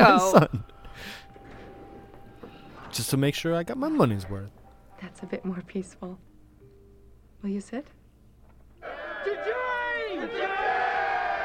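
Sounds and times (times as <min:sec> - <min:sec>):
speech: 0:00.0 - 0:01.2, 0:03.0 - 0:06.3, 0:07.4 - 0:08.0
bar crowd cheering: 0:08.8 - 0:11.4.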